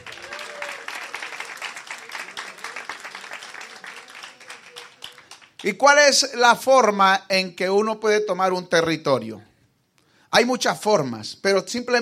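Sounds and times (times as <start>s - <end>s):
audience applauding: 0.0s - 5.7s
speech: 5.6s - 9.5s, 10.4s - 12.0s.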